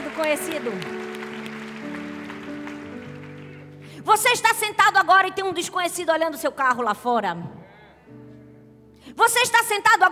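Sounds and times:
crowd applauding: 0.0 - 3.9
speech: 0.2 - 1.1, 4.0 - 7.6, 9.2 - 10.0.

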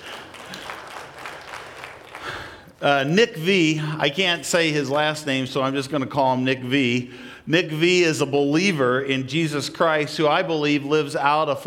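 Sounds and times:
audience applause: 0.0 - 2.8
speech: 2.8 - 11.6.

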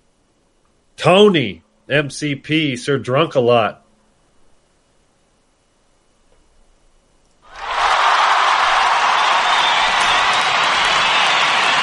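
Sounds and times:
speech: 1.0 - 3.8
crowd applause: 7.5 - 11.8.

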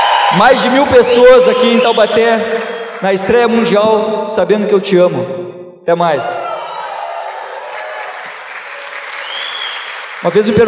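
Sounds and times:
faint cheers: 0.0 - 2.9, 6.2 - 10.0
large live audience applauding: 0.0 - 3.7, 6.5 - 10.6
speech: 0.3 - 6.5, 10.2 - 10.6.

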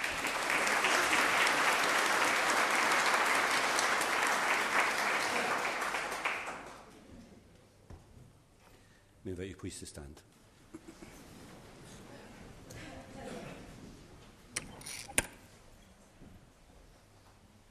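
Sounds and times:
round of applause: 0.0 - 7.0
speech: 9.4 - 10.4.

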